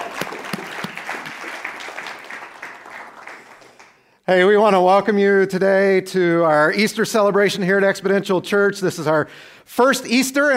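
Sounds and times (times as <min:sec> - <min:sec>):
church congregation applause at an Easter celebration: 0:00.0 - 0:04.2
speech: 0:04.3 - 0:10.5.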